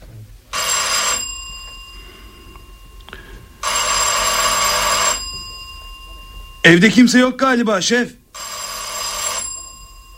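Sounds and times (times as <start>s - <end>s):
doorbell ringing: 0.5s - 10.1s
speech: 6.6s - 8.2s.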